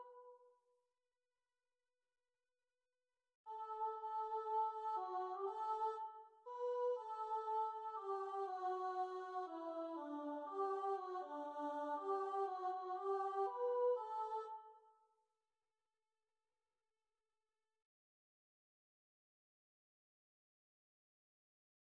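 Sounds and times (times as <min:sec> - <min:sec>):
alto choir singing: 0:03.5 - 0:14.6.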